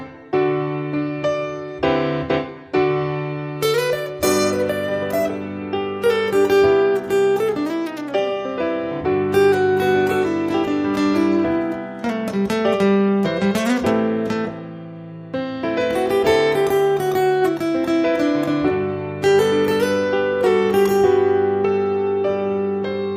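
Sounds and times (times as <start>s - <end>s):
piano: 0.0s - 23.1s
guitar solo: 3.6s - 23.1s.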